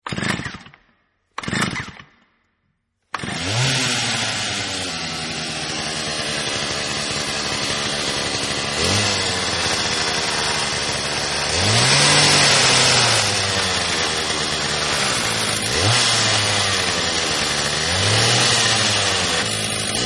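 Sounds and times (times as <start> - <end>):
chainsaw: 0.1 - 0.8, 1.4 - 2.0, 3.1 - 20.0.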